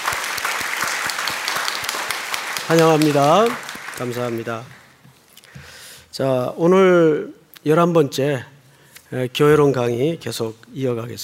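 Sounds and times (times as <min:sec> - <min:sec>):
audience applause: 0:00.0 - 0:05.0
speech: 0:02.7 - 0:04.8, 0:06.2 - 0:08.5, 0:09.1 - 0:11.2.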